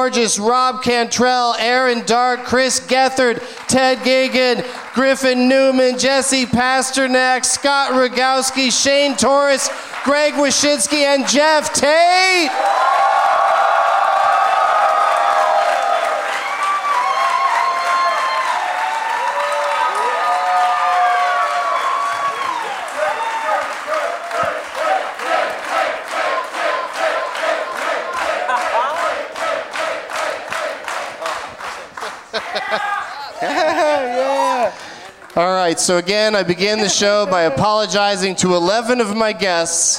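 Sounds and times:
speech: 0:00.0 - 0:12.9, 0:35.7 - 0:39.9
sustained rapid applause: 0:02.9 - 0:35.8
live audience cheering and whooping at a Christmas-themed comedy show: 0:12.5 - 0:25.2, 0:32.3 - 0:34.8
laughter: 0:28.2 - 0:29.2, 0:31.7 - 0:35.2.

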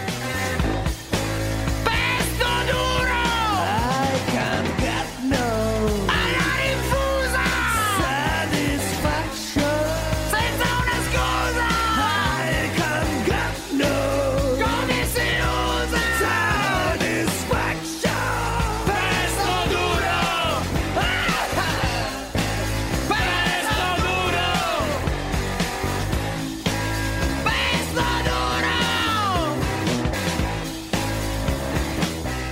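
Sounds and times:
Italian rock song: 0:00.0 - 0:32.5
raw shouted vocals: 0:01.9 - 0:25.1, 0:27.4 - 0:29.7.

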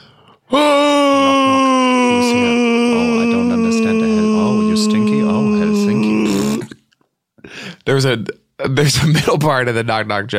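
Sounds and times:
speech: 0:00.5 - 0:00.8, 0:07.9 - 0:10.3
voice imitating a falling scream: 0:00.5 - 0:06.8.

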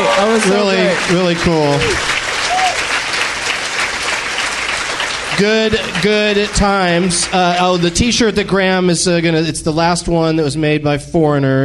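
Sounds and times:
audience applause: 0:00.0 - 0:08.5
speech: 0:00.2 - 0:02.2, 0:05.4 - 0:11.6.

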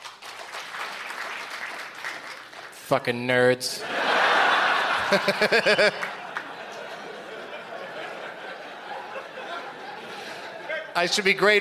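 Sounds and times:
audience applause: 0:00.0 - 0:02.8, 0:04.0 - 0:10.7
speech: 0:02.9 - 0:04.0, 0:05.1 - 0:06.1, 0:11.0 - 0:11.5
laughter: 0:03.8 - 0:11.2.

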